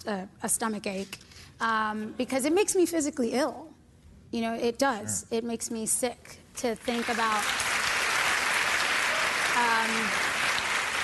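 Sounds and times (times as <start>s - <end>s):
speech: 0.0s - 7.6s, 9.6s - 10.3s
audience applause: 6.9s - 11.0s.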